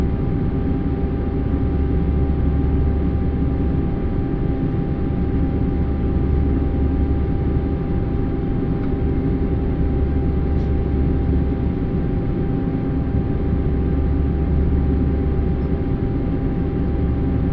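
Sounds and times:
airplane flight in Brazil: 0.0 - 17.5.

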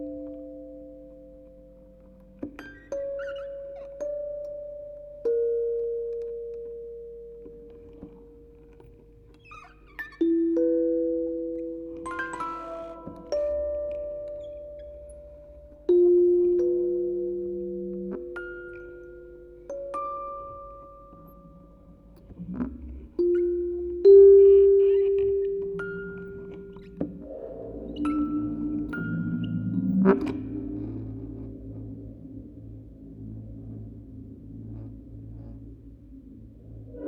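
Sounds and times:
quartet of music boxes playing on tape: 0.0 - 33.9.

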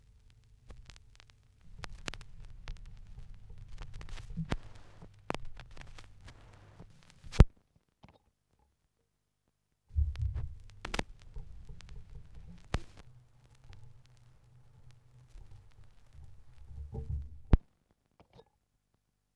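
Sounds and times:
vinyl record crackle: 0.0 - 7.5, 9.9 - 17.6.

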